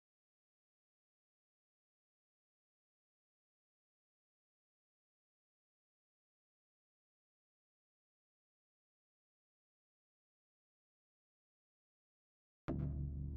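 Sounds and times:
bass: 12.7 - 13.3.

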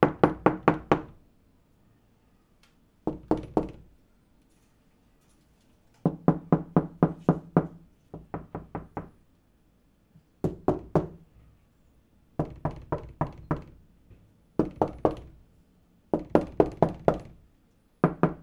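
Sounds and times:
knocking on wooden door: 0.0 - 1.2, 3.1 - 3.9, 6.1 - 9.2, 10.4 - 11.3, 12.4 - 13.8, 14.6 - 15.4, 16.2 - 17.4, 18.0 - 18.4.

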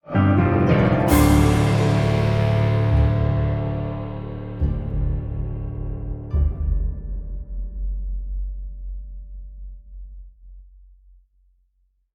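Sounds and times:
musical stinger: 0.1 - 7.0.

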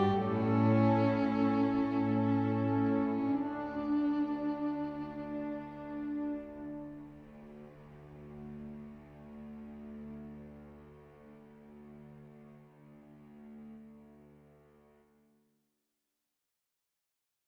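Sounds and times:
world music: 0.0 - 8.5.

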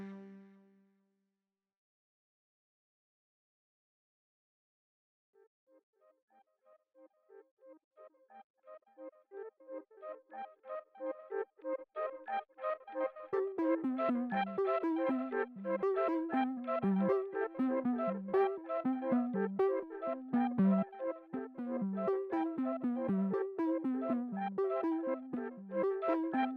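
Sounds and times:
synths: 12.0 - 26.5.

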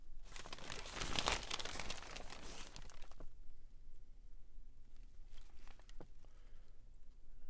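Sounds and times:
paper rustling: 0.3 - 3.3, 5.3 - 6.4.

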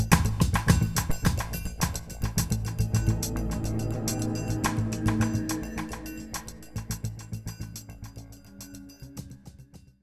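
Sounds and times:
stealth music loop: 0.6 - 8.1.

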